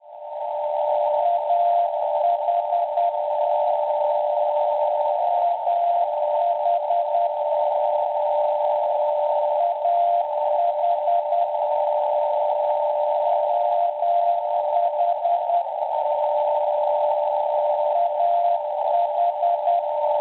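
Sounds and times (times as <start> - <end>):
non-directional beacon signal at 417 kHz: 0.4 - 20.1.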